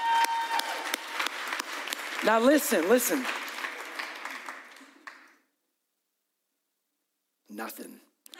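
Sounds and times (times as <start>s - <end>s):
audience clapping: 0.0s - 5.5s
speech: 2.2s - 3.4s, 7.6s - 8.1s.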